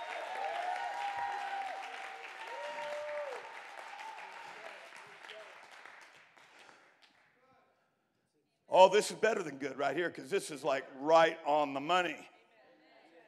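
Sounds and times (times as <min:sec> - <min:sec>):
people clapping: 0:00.0 - 0:07.5
speech: 0:08.8 - 0:12.3.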